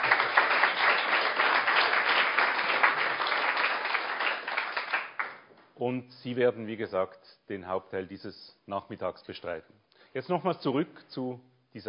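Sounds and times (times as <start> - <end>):
crowd applause: 0.0 - 5.4
speech: 5.8 - 11.8.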